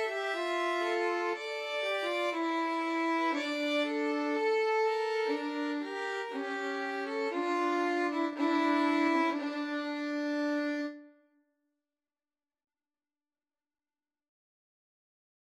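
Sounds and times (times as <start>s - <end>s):
pastorale on two violins and cello: 0.0s - 11.0s.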